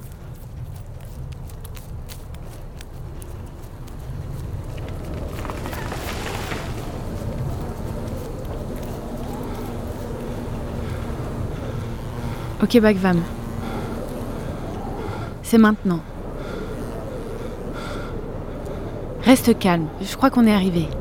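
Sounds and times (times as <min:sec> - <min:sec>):
storm wind: 0:00.0 - 0:20.9
speech: 0:12.6 - 0:13.4, 0:15.5 - 0:16.1, 0:19.2 - 0:20.9.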